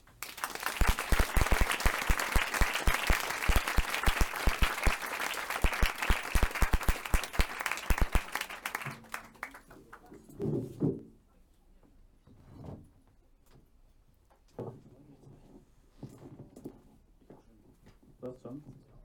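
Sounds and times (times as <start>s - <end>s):
audience applauding: 0.0s - 9.7s.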